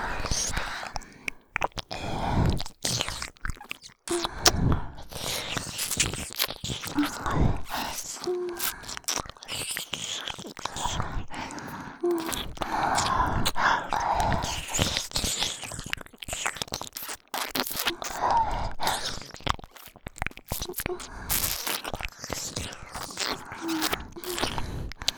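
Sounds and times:
ASMR licking of both ears: 0:00.0 - 0:25.1.

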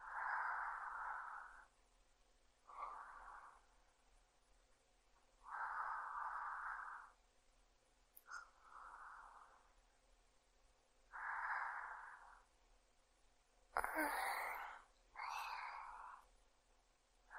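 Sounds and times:
sleeping breath: 0:00.0 - 0:01.7, 0:02.6 - 0:03.8, 0:05.4 - 0:07.2, 0:08.2 - 0:09.8, 0:11.1 - 0:12.5, 0:13.8 - 0:16.3.

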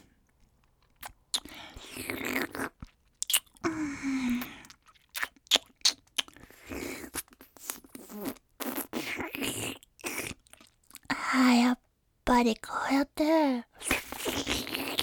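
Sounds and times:
wet slurping and licking: 0:00.8 - 0:11.0, 0:13.8 - 0:15.0
speech: 0:12.4 - 0:13.7.

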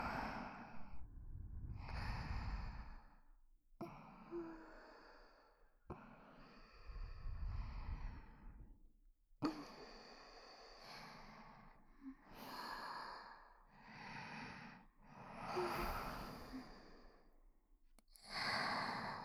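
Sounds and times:
soft sleeping breaths: 0:00.0 - 0:08.8, 0:09.4 - 0:17.4, 0:18.1 - 0:19.2
sweet sighing breaths: 0:00.0 - 0:08.8, 0:15.4 - 0:17.2.

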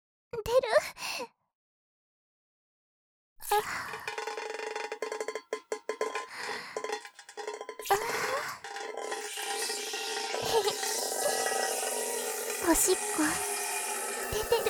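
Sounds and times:
urinating into a tin bucket: 0:03.5 - 0:14.6.

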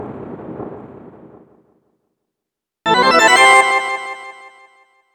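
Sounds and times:
8-bit chiptune music: 0:02.9 - 0:05.1.

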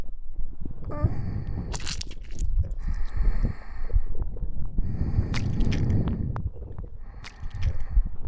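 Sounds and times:
sticky slimy tentacle squelching, one ear only: 0:00.9 - 0:03.6, 0:04.9 - 0:08.1.

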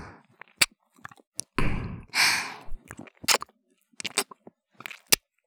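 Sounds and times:
ear licking: 0:00.4 - 0:01.6, 0:02.6 - 0:05.2.

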